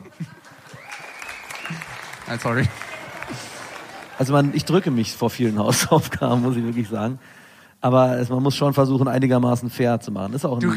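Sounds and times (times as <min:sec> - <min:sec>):
laughter: 0:00.0 - 0:00.9, 0:01.7 - 0:06.2
applause: 0:00.0 - 0:05.4
speech: 0:02.3 - 0:03.4, 0:04.2 - 0:10.7.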